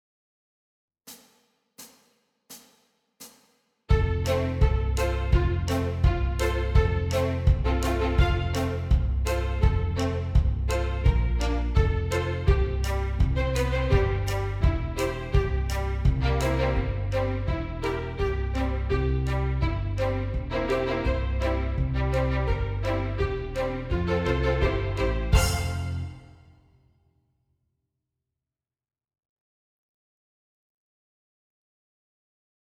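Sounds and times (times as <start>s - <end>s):
strings: 3.9s - 26.4s.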